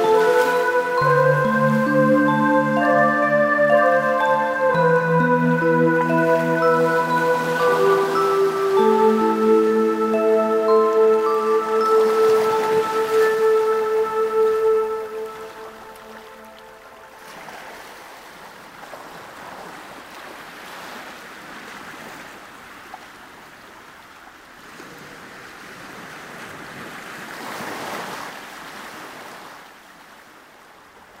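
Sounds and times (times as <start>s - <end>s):
waves whispering: 0.0s - 19.7s
nature sounds: 0.0s - 31.1s.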